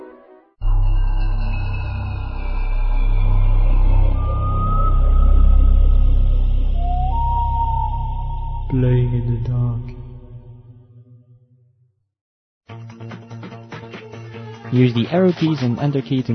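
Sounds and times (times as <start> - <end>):
thin high tone sliding downward: 0.6 - 10.8
gliding whistle-like notes: 0.6 - 11.0
game company logo deep rumbling drone: 0.6 - 11.6
speech: 8.8 - 9.9, 14.7 - 16.3.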